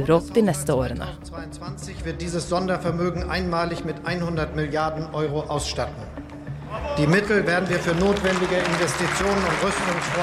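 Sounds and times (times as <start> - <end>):
speech: 0.0 - 10.2
German parliament standing ovation applause: 6.8 - 10.2.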